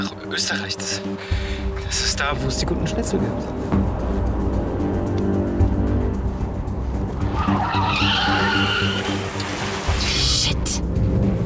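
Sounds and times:
speech: 0:00.0 - 0:04.0
car engine roaring during a chase: 0:02.2 - 0:11.4
tire squealing: 0:06.9 - 0:10.6.

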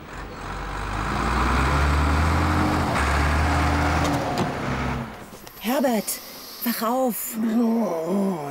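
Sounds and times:
excavator engine running: 0:00.0 - 0:06.5
speech: 0:05.8 - 0:08.4.

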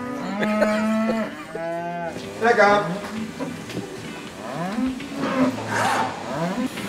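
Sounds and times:
cow mooing: 0:00.0 - 0:02.2, 0:04.4 - 0:06.7
speech: 0:02.4 - 0:03.2.

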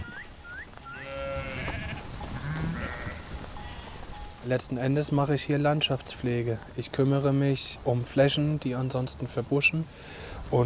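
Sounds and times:
sheep bleating: 0:00.8 - 0:04.1
speech: 0:04.5 - 0:10.6.

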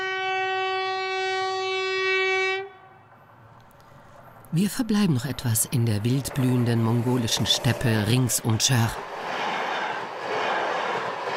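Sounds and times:
Trans-Mongolian train horn: 0:00.0 - 0:03.0
Trans-Mongolian train rumbling on the tracks: 0:03.1 - 0:11.3
speech: 0:04.5 - 0:09.3.

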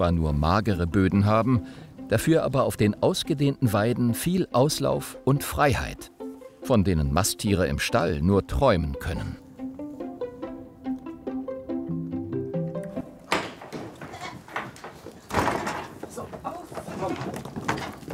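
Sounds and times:
speech: 0:00.0 - 0:09.4
short melodic passage of stepped notes: 0:09.3 - 0:13.3
thudding knocks: 0:12.9 - 0:18.1
rustling: 0:13.0 - 0:18.1
goats bleating: 0:13.8 - 0:15.2.

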